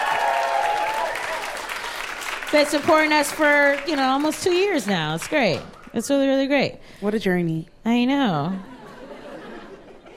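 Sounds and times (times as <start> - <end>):
audience applause: 0.0 - 5.9
speech: 2.5 - 8.7
laughter: 8.6 - 10.1.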